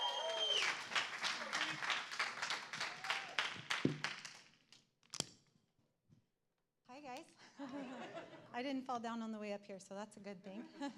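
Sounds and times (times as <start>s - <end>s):
round of applause for speaker: 0.0s - 4.5s
laughter: 7.4s - 8.6s, 10.5s - 10.9s
speech: 8.6s - 10.9s.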